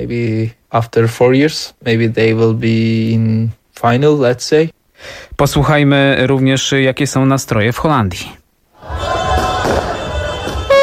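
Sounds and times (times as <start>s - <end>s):
speech: 0.0s - 9.1s
fireworks exploding, fired by Dutch fans after the final whistle: 9.3s - 10.8s.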